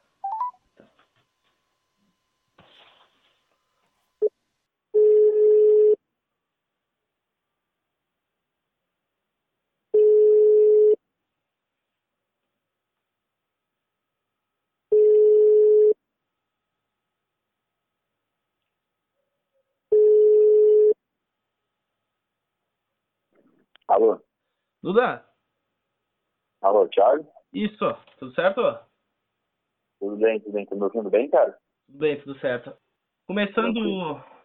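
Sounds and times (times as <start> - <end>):
telephone ringing tone: 0.2 - 0.6, 5.0 - 6.0, 9.9 - 11.0, 14.9 - 16.0, 19.9 - 21.0
speech: 23.9 - 25.3, 26.6 - 28.9, 30.0 - 34.3.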